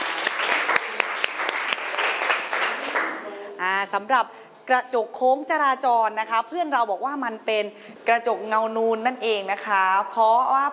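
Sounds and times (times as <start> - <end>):
audience applause: 0.0 - 3.3
speech: 3.8 - 10.7.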